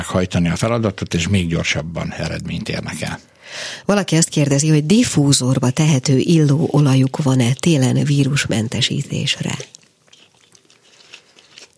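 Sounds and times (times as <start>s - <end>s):
speech: 0.0s - 9.8s
person drinking a sip of water: 9.5s - 11.7s.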